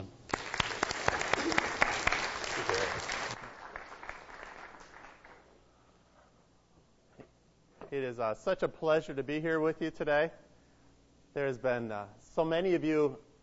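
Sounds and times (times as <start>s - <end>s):
church audience applauding to welcome a guest speaker: 0.0s - 5.6s
speech: 7.9s - 10.4s, 11.4s - 13.4s.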